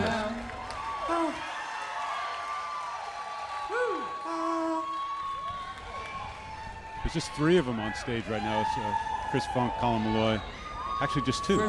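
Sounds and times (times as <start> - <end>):
concert crowd cheering and clapping: 0.0 - 11.6
speech: 7.1 - 11.6.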